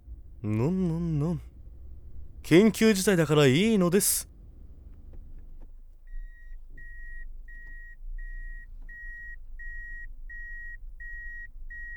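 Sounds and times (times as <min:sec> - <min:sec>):
low rumbling car engine: 0:00.0 - 0:11.9
speech: 0:00.4 - 0:01.5, 0:02.5 - 0:04.3
car reversing into parking space beeping: 0:06.1 - 0:11.9.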